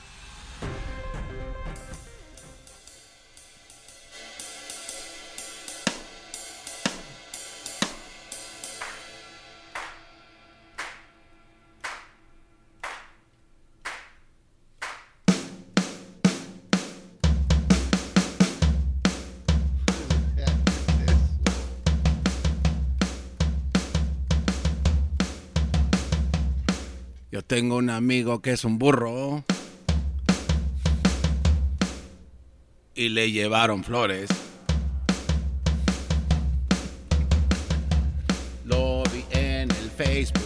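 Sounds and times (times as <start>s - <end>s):
drum kit being played: 0.6s - 10.2s, 14.8s - 27.2s, 29.5s - 32.4s, 33.9s - 40.4s
speech: 27.5s - 29.5s, 33.0s - 34.4s.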